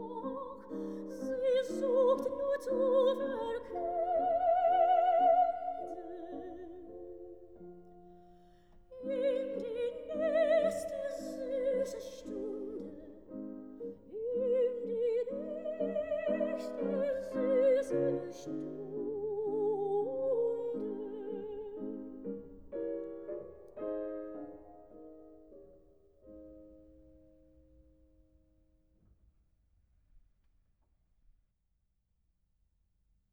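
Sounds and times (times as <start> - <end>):
person singing: 0.0 - 7.1, 8.9 - 13.2, 14.1 - 21.9
piano: 0.0 - 29.3.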